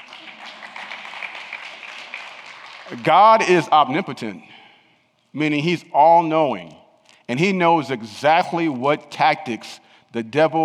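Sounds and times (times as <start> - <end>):
crowd clapping: 0.0 - 3.4
speech: 2.9 - 4.5, 5.3 - 10.6.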